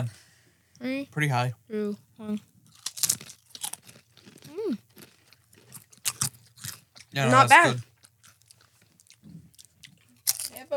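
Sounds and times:
speech: 0:00.8 - 0:02.5, 0:07.1 - 0:07.9
barbecue-flavored chips being bitten and chewed: 0:02.7 - 0:10.6
short vocal sound: 0:07.2 - 0:07.8.

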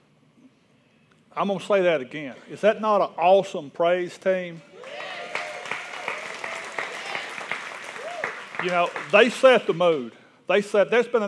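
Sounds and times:
speech: 0:01.4 - 0:04.7, 0:08.6 - 0:11.2
audience applause: 0:04.8 - 0:10.1.

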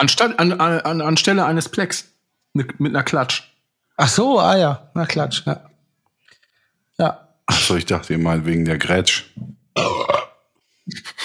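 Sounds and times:
speech: 0:00.0 - 0:05.7, 0:07.0 - 0:10.1
loud burp: 0:09.7 - 0:10.5.

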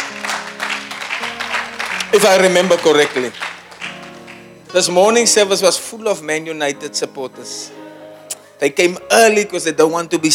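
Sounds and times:
audience clapping: 0:00.0 - 0:04.9
speech: 0:02.1 - 0:03.5, 0:04.7 - 0:07.8, 0:08.6 - 0:10.3.

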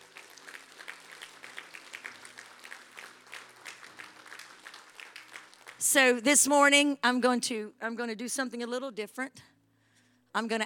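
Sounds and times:
audience clapping hands in praise: 0:00.0 - 0:06.2
speech: 0:05.8 - 0:09.5, 0:10.4 - 0:10.6.

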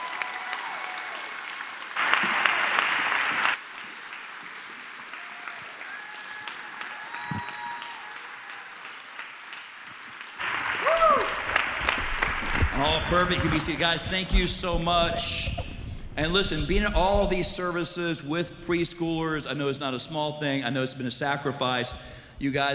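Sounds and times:
standing audience applauding to welcome guests onto a stage: 0:00.0 - 0:14.4
speech: 0:13.1 - 0:15.6, 0:16.2 - 0:22.7.

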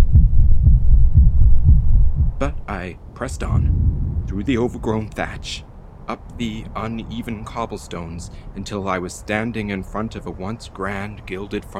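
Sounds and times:
deep rumbling drone: 0:00.0 - 0:02.6, 0:03.3 - 0:07.4
loud thumping heartbeat: 0:00.0 - 0:02.6, 0:03.4 - 0:04.6
speech: 0:02.4 - 0:03.8, 0:04.4 - 0:11.7.

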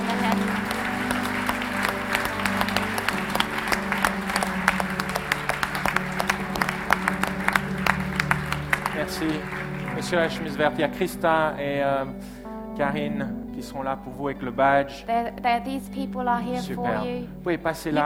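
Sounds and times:
loud audience applause at a gathering: 0:00.0 - 0:11.4
speech: 0:10.1 - 0:18.0.

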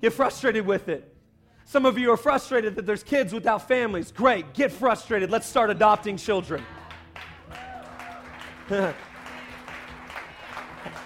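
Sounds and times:
speech: 0:00.0 - 0:07.3, 0:08.7 - 0:09.1
audience clapping: 0:05.9 - 0:11.0.

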